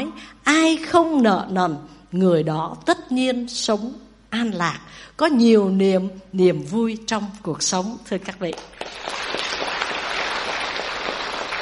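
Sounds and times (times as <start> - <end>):
speech: 0.2 - 9.2
audience clapping at a Buddhist talk: 8.5 - 11.6.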